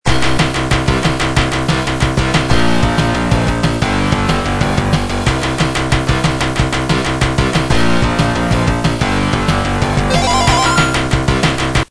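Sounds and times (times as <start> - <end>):
8-bit music: 0.2 - 11.7.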